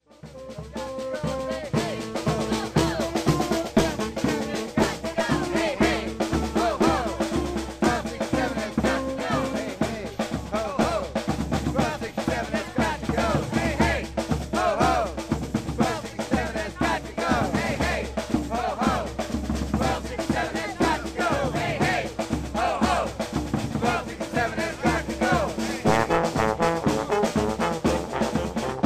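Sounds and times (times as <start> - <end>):
marching band: 0.0 - 28.8.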